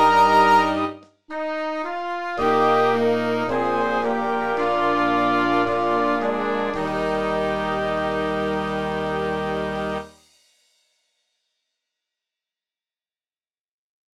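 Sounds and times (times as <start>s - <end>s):
song playback: 0.0s - 10.1s.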